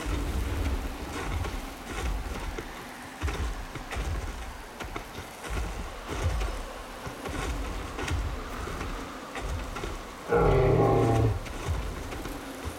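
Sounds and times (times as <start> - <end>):
desert ambience: 0.0 - 12.7.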